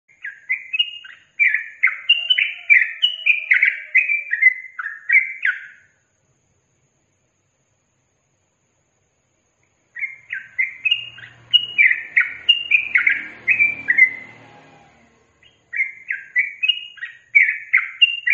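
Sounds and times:
yellow-vented bulbul singing chattering slurred phrases: 0:00.1 - 0:05.9, 0:09.9 - 0:14.4, 0:15.3 - 0:18.3.

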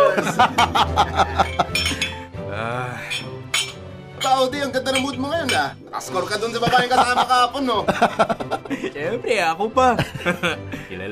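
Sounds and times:
people talking and laughing softly: 0:00.0 - 0:03.0, 0:06.1 - 0:11.1
speech: 0:00.2 - 0:01.6, 0:04.4 - 0:11.1
glasses clinking together in a toast: 0:01.1 - 0:02.3, 0:03.0 - 0:06.8.

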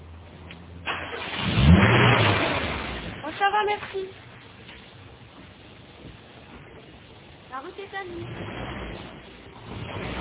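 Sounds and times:
car engine starting: 0:00.0 - 0:03.6, 0:08.0 - 0:10.1
speech: 0:03.6 - 0:04.3, 0:07.8 - 0:08.7.

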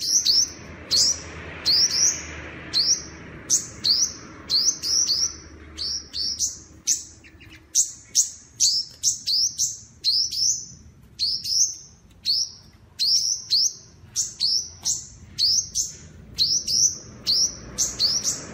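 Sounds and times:
high bird chirps: 0:00.0 - 0:18.5
low background noise: 0:00.0 - 0:18.5.

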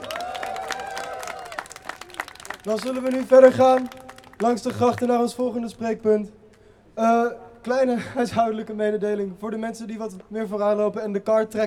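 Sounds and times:
crowd applauding: 0:00.0 - 0:05.2
speech: 0:02.6 - 0:06.4, 0:07.0 - 0:11.6.

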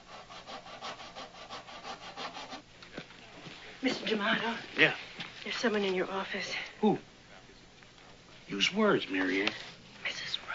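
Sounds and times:
hand saw cutting the heels off women's high-heeled shoes: 0:00.0 - 0:02.6
speech: 0:03.8 - 0:07.1, 0:08.5 - 0:09.8.

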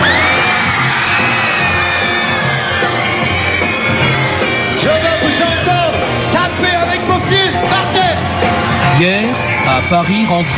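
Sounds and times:
piercing whistle from a concert crowd: 0:00.0 - 0:05.7, 0:08.9 - 0:10.5
concert crowd at the Olympia in Paris shouting and cheering with whoops: 0:00.0 - 0:10.5
speech: 0:09.9 - 0:10.5.

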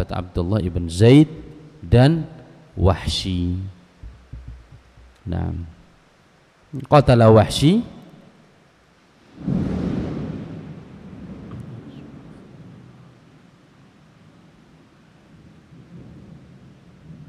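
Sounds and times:
speech: 0:00.0 - 0:03.8, 0:05.2 - 0:05.8, 0:06.7 - 0:08.0, 0:09.4 - 0:09.7
thunder rumbling: 0:00.9 - 0:05.9, 0:09.4 - 0:13.2.

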